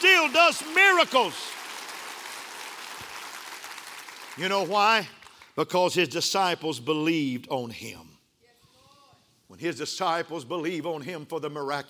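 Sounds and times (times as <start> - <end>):
audience clapping hands: 0.0 - 5.6
speech: 0.2 - 1.6, 4.4 - 8.1, 9.5 - 11.8.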